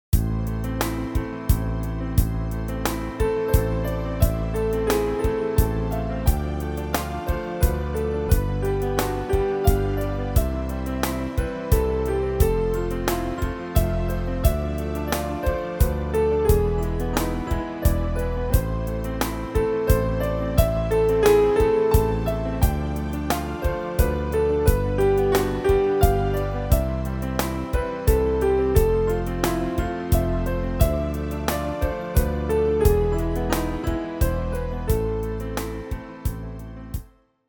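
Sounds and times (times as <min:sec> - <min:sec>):
ballad in triple time: 0:00.2 - 0:37.0.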